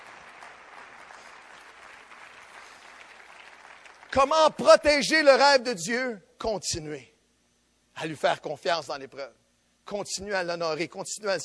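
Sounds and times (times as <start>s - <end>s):
audience applause: 0.0s - 4.2s
speech: 4.1s - 7.1s, 8.0s - 11.4s.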